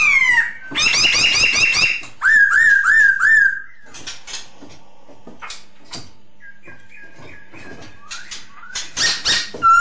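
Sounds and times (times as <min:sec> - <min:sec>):
masked laughingthrush whistled lure song: 0:00.0 - 0:04.0, 0:06.4 - 0:09.7.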